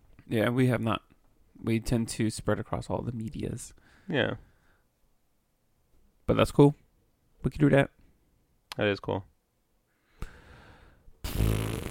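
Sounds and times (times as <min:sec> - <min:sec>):
speech: 0:00.3 - 0:04.5, 0:06.3 - 0:06.8, 0:07.4 - 0:08.0, 0:08.8 - 0:09.3
fart: 0:11.2 - 0:11.8.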